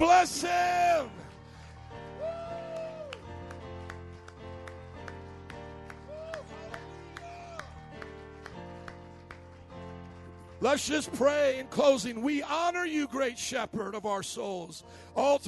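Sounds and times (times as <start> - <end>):
audience hand clapping in praise: 0.0 - 12.1
speech: 10.6 - 15.4.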